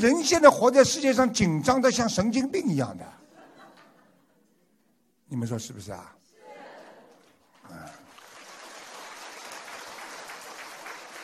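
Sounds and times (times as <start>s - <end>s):
speech: 0.0s - 3.2s, 5.3s - 6.2s
laughter: 3.2s - 4.5s, 6.4s - 7.4s
audience applause: 7.1s - 11.2s.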